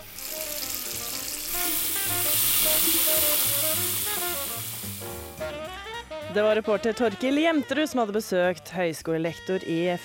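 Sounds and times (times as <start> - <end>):
thin stream of water running from tap: 0.0 - 5.3
speech: 6.3 - 10.0.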